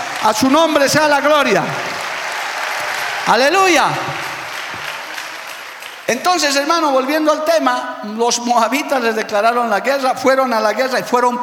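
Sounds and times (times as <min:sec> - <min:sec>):
crowd applauding: 0:00.0 - 0:07.0
speech: 0:00.2 - 0:02.0, 0:03.2 - 0:04.2, 0:06.1 - 0:11.4.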